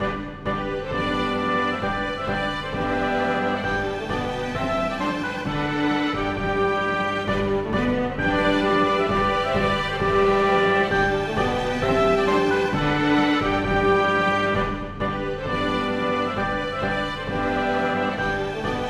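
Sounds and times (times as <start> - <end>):
drums: 0.0 - 18.8
strings: 0.0 - 18.8
wind instruments: 0.0 - 18.8.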